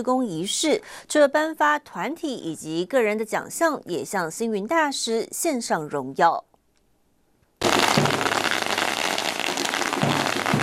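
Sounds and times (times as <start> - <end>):
speech: 0.0 - 6.5
string of firecrackers crackling: 7.6 - 10.6.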